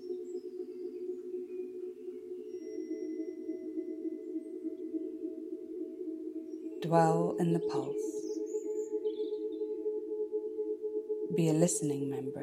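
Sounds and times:
struck tuning fork tone: 0.0s - 12.4s
speech: 6.8s - 8.4s, 11.3s - 12.4s.

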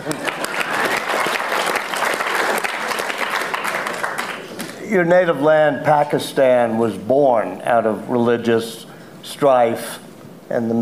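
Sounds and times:
audience applause: 0.0s - 4.5s
speech: 4.9s - 10.8s.

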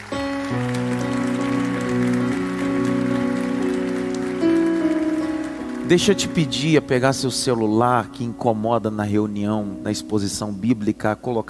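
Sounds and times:
audience applauding: 0.0s - 6.9s
speech: 5.9s - 11.4s.

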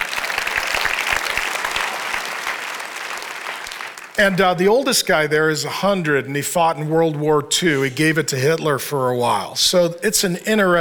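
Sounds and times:
audience clapping: 0.0s - 4.6s
speech: 4.2s - 10.7s.

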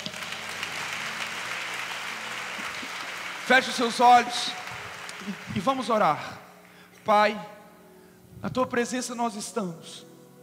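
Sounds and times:
audience applauding: 0.0s - 6.9s
speech: 3.5s - 4.6s, 5.2s - 6.4s, 7.1s - 7.6s, 8.4s - 10.1s.

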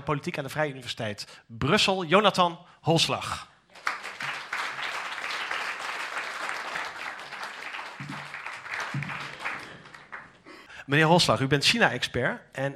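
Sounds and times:
speech: 0.0s - 3.9s, 10.9s - 12.7s
audience applause: 3.8s - 10.5s.

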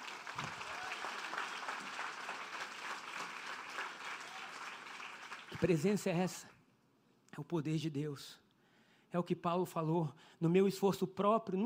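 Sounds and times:
audience applause: 0.0s - 5.8s
speech: 0.4s - 0.6s, 5.6s - 6.6s, 7.4s - 8.4s, 9.1s - 11.6s.

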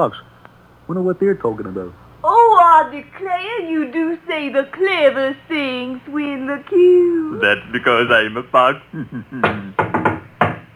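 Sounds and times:
speech: 0.0s - 0.3s, 0.9s - 9.8s
laughter: 7.3s - 9.9s
knocking on a door: 9.4s - 10.7s.

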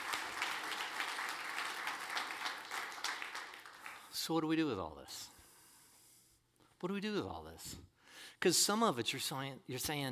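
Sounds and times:
audience applause: 0.0s - 4.1s
speech: 4.3s - 5.4s, 6.8s - 10.1s.

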